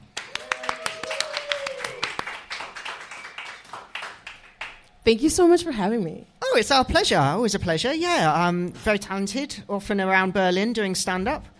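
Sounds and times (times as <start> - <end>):
round of applause: 0.0 - 4.9
speech: 5.0 - 11.5.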